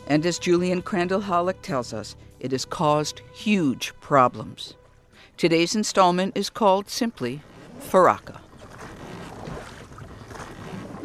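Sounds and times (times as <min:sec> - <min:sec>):
speech: 0:00.1 - 0:08.4
wind on a broad river: 0:06.1 - 0:11.0
water rushing while rowing a boat on a broad river: 0:06.6 - 0:11.0.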